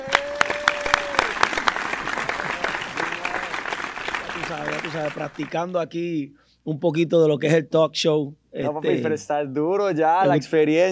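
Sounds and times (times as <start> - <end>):
audience applause: 0.0 - 5.6
speech: 4.5 - 10.9.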